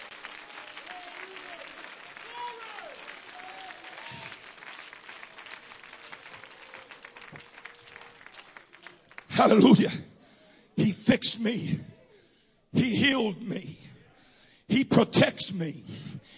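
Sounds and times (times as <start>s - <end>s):
audience clapping hands: 0.0s - 10.0s
speech: 9.4s - 10.1s, 11.1s - 11.9s, 12.8s - 13.7s, 14.9s - 16.0s.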